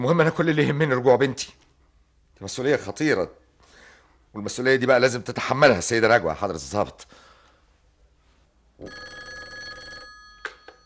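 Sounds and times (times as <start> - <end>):
speech: 0.0 - 1.6, 2.4 - 3.4, 4.3 - 7.3, 8.8 - 9.2
old-style telephone bell ringing: 8.8 - 10.8.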